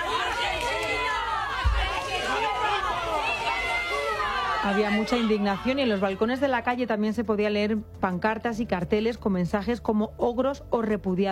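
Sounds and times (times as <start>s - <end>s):
angry crowd shouting: 0.0s - 6.2s
speech: 4.6s - 11.2s.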